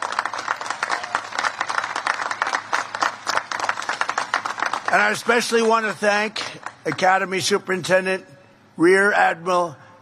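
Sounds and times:
audience applause: 0.0s - 7.2s
speech: 4.9s - 9.8s.

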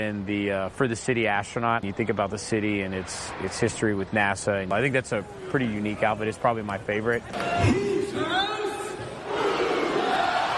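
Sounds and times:
speech: 0.0s - 8.5s
arena crowd chanting and roaring: 8.1s - 10.5s.

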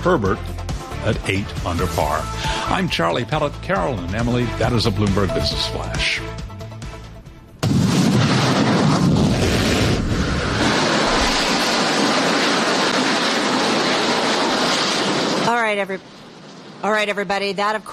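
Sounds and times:
speech: 0.0s - 6.5s, 15.7s - 16.1s, 16.8s - 17.9s
SpaceX Starship rocket launch attempt roar: 7.6s - 16.9s.

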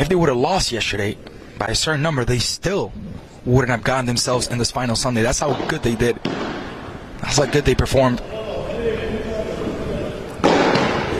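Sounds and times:
speech: 0.0s - 6.6s, 7.2s - 8.3s
steady noise: 0.0s - 11.1s
padel ball bouncing off the back wall: 10.4s - 11.1s.

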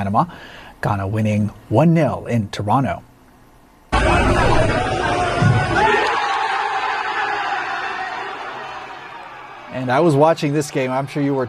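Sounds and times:
speech: 0.0s - 3.1s, 9.7s - 11.4s
England football fans cheering: 3.9s - 11.4s.

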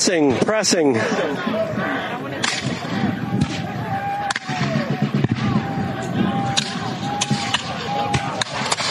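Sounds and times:
crowd noise: 0.0s - 8.8s
musket volley fired by infantry: 0.0s - 8.8s
scattered voices: 0.0s - 8.8s
speech: 0.1s - 2.7s.

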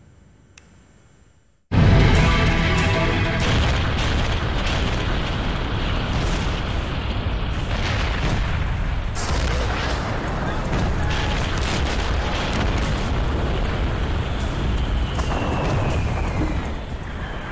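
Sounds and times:
heavy bombing with booming blasts and crackling bursts: 1.7s - 17.5s.

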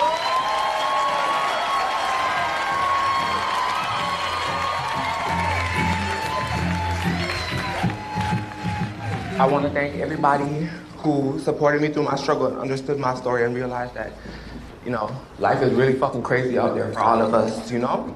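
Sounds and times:
audience applause and cheering welcoming a guest to the stage: 0.0s - 10.6s
speech: 9.4s - 18.1s.

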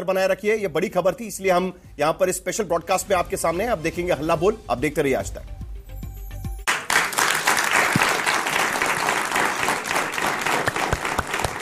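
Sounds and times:
speech: 0.0s - 5.6s
crowd applauding: 6.7s - 11.5s.

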